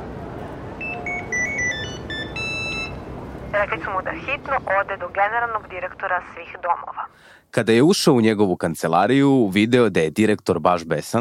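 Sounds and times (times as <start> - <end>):
hiss: 0.0 - 11.1
telephone electronic ringtone: 0.8 - 3.0
speech: 3.6 - 11.1.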